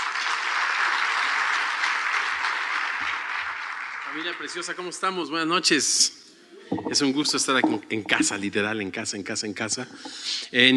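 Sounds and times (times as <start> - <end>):
audience applause: 0.0 - 4.8
speech: 4.1 - 6.2, 6.8 - 10.7.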